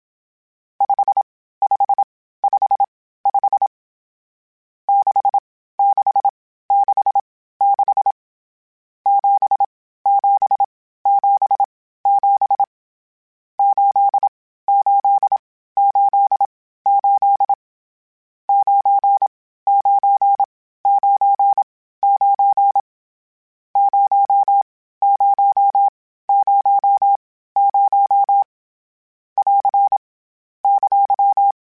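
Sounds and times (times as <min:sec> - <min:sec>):
Morse code CW code groups: 0:00.8 - 0:03.7, 0:04.9 - 0:08.2, 0:09.1 - 0:12.7, 0:13.6 - 0:17.6, 0:18.5 - 0:22.9, 0:23.8 - 0:28.5, 0:29.4 - 0:30.0, 0:30.6 - 0:31.6.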